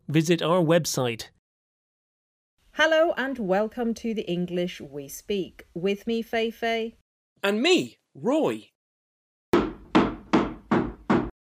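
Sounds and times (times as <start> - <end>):
speech: 0.1 - 1.4, 2.8 - 8.7
hammer striking a wooden table: 9.6 - 11.4.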